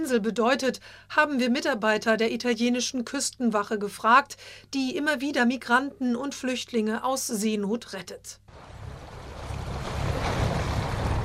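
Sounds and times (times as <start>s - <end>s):
speech: 0.0s - 8.4s
sea waves heard from an Italian coast guard patrol boat off Lampedusa: 8.5s - 11.2s.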